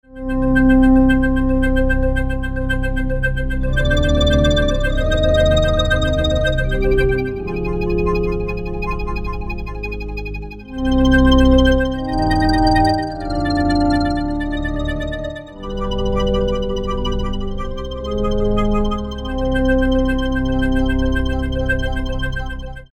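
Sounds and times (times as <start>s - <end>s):
E-mu Proteus VX synthesizer music: 0.3s - 22.9s.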